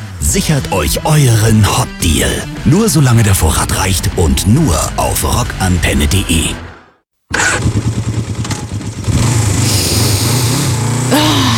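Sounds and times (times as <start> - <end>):
speech: 0.3 - 6.7
motorcycle engine starting and revving: 7.3 - 11.5.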